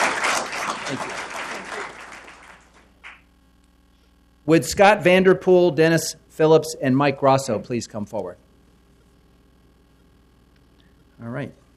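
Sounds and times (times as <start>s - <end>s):
round of applause at a workplace gathering: 0.0s - 3.2s
speech: 0.9s - 1.2s, 4.5s - 8.4s, 11.2s - 11.6s.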